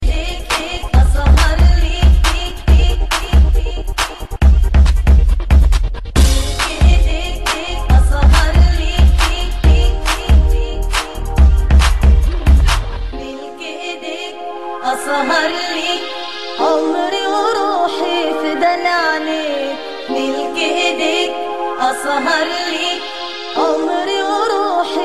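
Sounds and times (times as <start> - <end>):
Arabic club remix: 0.0 - 25.0.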